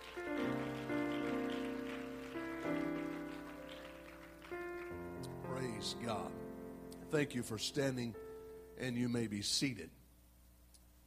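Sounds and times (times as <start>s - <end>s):
people clapping: 0.0s - 5.6s
speech: 5.8s - 6.4s, 7.1s - 8.2s, 8.8s - 10.0s.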